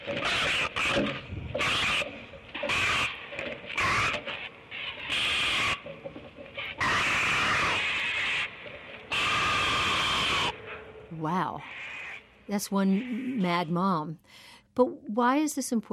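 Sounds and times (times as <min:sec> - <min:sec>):
great blue heron screaming: 0:00.2 - 0:03.2, 0:03.8 - 0:05.9, 0:06.7 - 0:08.5, 0:09.1 - 0:10.6
speech: 0:12.5 - 0:15.9.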